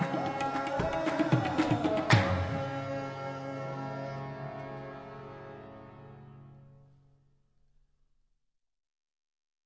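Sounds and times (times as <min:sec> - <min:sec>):
Sufi vocals: 0:00.0 - 0:04.4.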